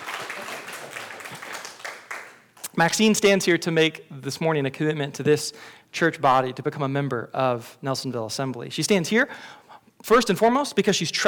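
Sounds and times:
audience applauding: 0.0 - 2.7
speech: 2.8 - 11.2.

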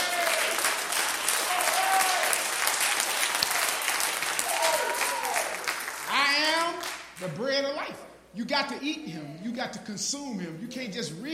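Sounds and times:
audience hand clapping: 0.0 - 7.4
speech: 7.4 - 11.3.

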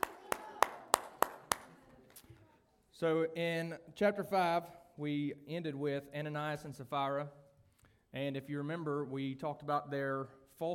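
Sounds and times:
hand claps during a church service: 0.0 - 2.3
speech: 3.0 - 7.4, 8.1 - 10.7.

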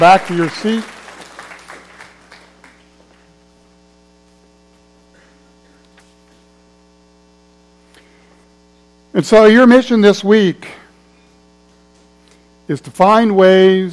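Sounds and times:
speech: 0.0 - 0.9, 9.2 - 10.8, 12.7 - 13.9
applause: 0.0 - 3.0.

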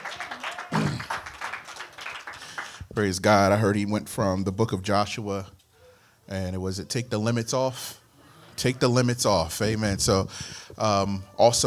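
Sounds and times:
hand clapping: 0.0 - 3.0
speech: 3.0 - 5.6, 6.3 - 8.0, 8.6 - 11.6.

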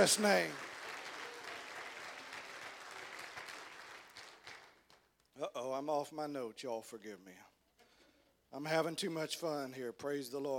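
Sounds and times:
speech: 0.0 - 0.7, 5.4 - 7.5, 8.5 - 10.5
audience clapping hands: 0.0 - 5.2.

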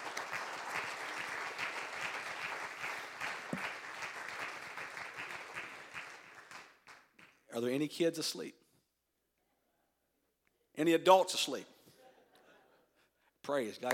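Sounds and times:
audience clapping hands: 0.0 - 7.5
speech: 7.6 - 8.6, 10.8 - 11.7, 13.5 - 13.9.

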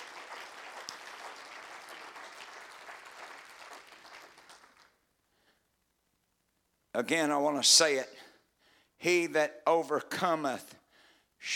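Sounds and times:
audience clapping: 0.0 - 5.1
speech: 7.0 - 8.2, 9.0 - 10.8.

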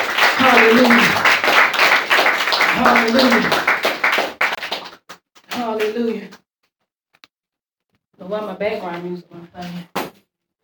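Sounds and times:
crowd clapping hands: 0.0 - 6.0
speech: 0.6 - 1.3, 8.6 - 9.9.

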